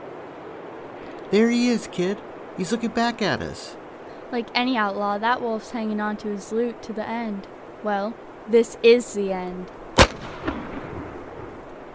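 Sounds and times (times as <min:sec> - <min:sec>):
speech: 0:01.3 - 0:09.8
gunshot: 0:10.0 - 0:11.1.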